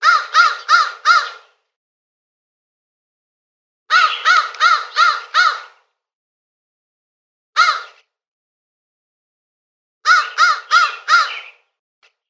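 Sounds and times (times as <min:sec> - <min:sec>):
crow cawing: 0:00.0 - 0:01.5, 0:03.9 - 0:05.8, 0:07.6 - 0:08.0, 0:10.0 - 0:11.6.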